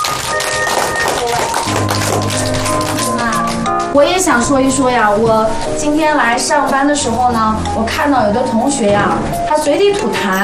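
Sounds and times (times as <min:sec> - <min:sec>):
classroom applause: 0:00.0 - 0:04.0
speech: 0:04.0 - 0:10.4.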